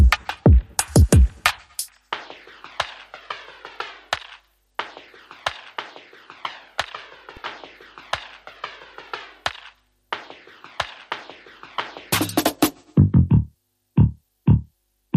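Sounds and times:
drums: 0.0s - 15.1s
bass: 12.2s - 15.1s.

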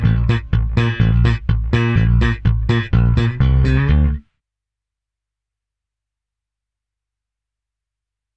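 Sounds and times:
dance bass: 0.0s - 4.2s.

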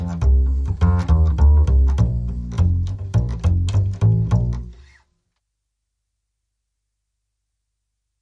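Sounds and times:
down home bass line: 0.0s - 4.9s.

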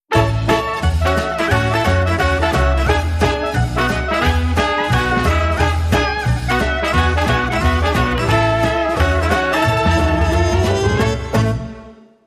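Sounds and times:
jingle: 0.1s - 12.0s.

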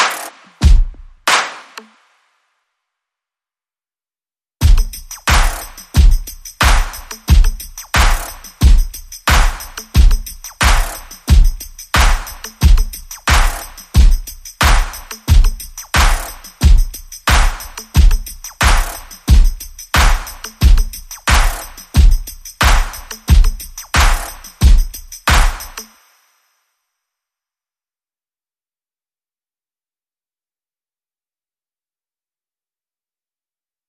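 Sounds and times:
percussion: 0.0s - 2.2s, 4.6s - 26.6s.

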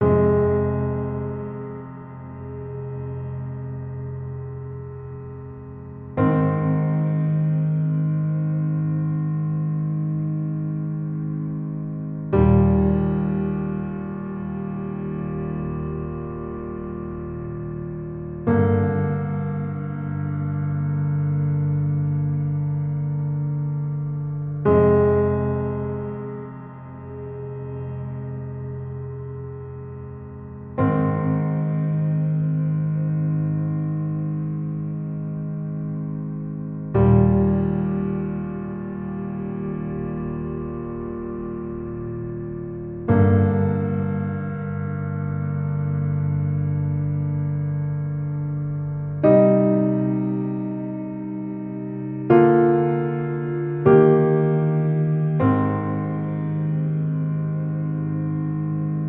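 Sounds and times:
mellow piano underscore: 0.0s - 59.0s.

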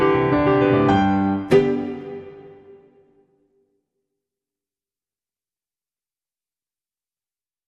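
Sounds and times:
Christmas song: 0.1s - 3.3s.

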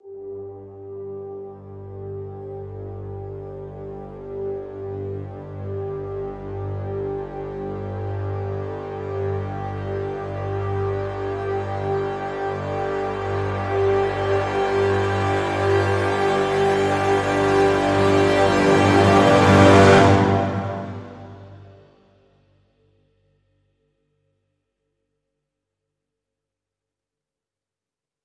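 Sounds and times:
full crescendo brass swell: 0.0s - 22.1s.

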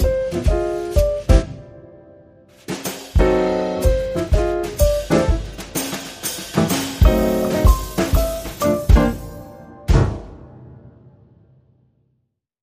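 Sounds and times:
jazzy brushes on drums: 0.0s - 1.6s, 2.6s - 10.3s
jazzy piano: 0.0s - 11.0s.

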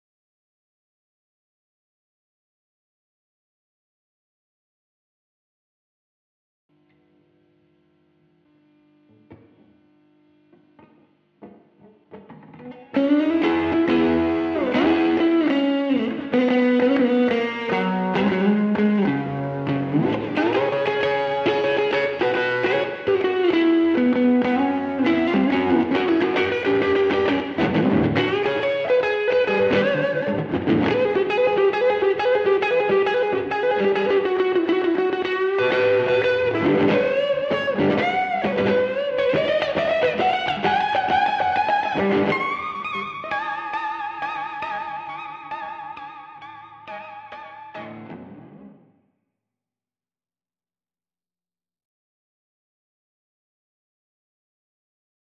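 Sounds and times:
guitar: 8.4s - 49.1s.

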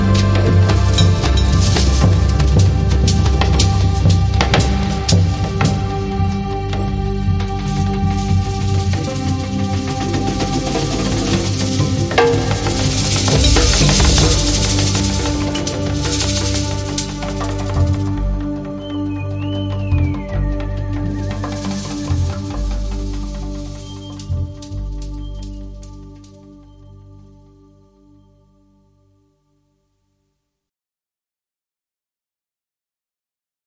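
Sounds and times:
rhythms: 0.0s - 26.7s.

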